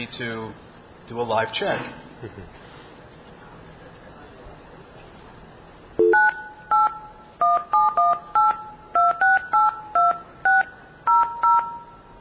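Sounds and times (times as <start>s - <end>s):
speech: 0.0s - 2.7s
blue box telephone signaling tones: 6.0s - 12.0s.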